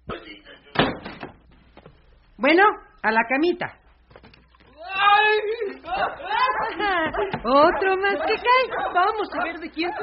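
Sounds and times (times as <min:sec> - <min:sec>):
door pushed shut with a heavy slam: 0:00.7 - 0:01.4
speech: 0:02.4 - 0:03.8, 0:06.0 - 0:10.0
laughter: 0:05.6 - 0:10.0.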